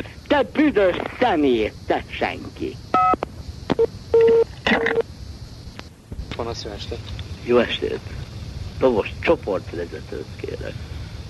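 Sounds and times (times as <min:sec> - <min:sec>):
speech: 0:00.0 - 0:05.1, 0:06.4 - 0:08.2, 0:08.8 - 0:10.9
telephone DTMF keypad beeps: 0:03.0 - 0:03.2, 0:03.8 - 0:05.0.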